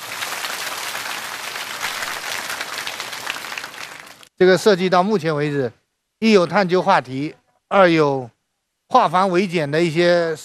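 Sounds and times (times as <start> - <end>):
classroom applause: 0.0 - 4.3
speech: 4.4 - 10.4.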